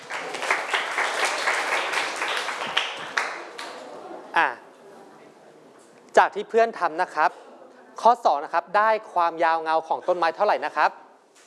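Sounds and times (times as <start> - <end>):
students clapping applause: 0.0 - 3.9
speech: 6.2 - 11.0.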